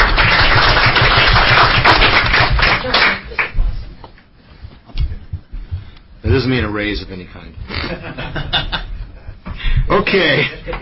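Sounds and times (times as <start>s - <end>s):
round of applause: 0.0s - 3.6s
speech: 6.4s - 8.5s, 9.9s - 10.7s
laughter: 7.7s - 9.4s.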